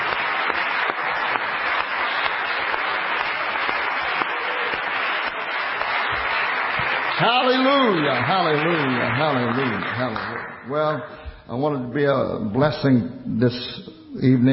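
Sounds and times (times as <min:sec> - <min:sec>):
audience clapping in praise: 0:00.0 - 0:11.2
speech: 0:07.2 - 0:14.5.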